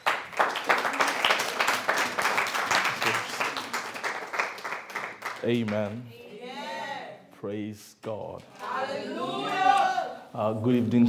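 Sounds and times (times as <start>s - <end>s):
audience clapping: 0.0s - 6.0s
speech: 5.4s - 6.2s, 7.4s - 9.6s, 10.4s - 11.0s.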